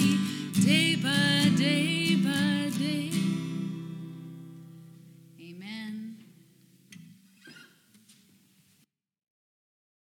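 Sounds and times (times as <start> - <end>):
acoustic music: 0.0 - 7.5.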